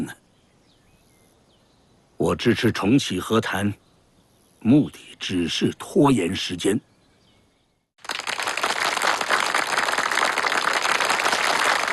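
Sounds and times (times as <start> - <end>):
speech: 2.2 - 3.8, 4.6 - 6.9
audience applause: 8.0 - 11.9.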